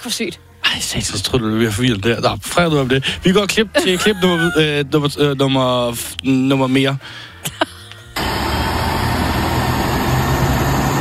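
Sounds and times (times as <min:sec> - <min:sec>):
speech: 0:00.0 - 0:07.7
laughter: 0:03.0 - 0:05.5, 0:07.4 - 0:08.2
airplane engine: 0:07.0 - 0:10.9.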